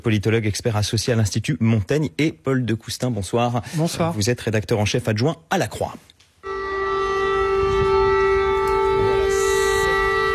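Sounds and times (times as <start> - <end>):
speech: 0.0 - 6.2
air raid alarm siren in Kyiv: 6.4 - 10.3.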